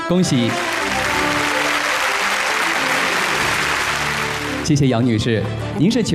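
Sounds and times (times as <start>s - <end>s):
speech: 0.1s - 0.7s, 4.7s - 6.1s
audience applause at an award ceremony: 0.4s - 4.8s.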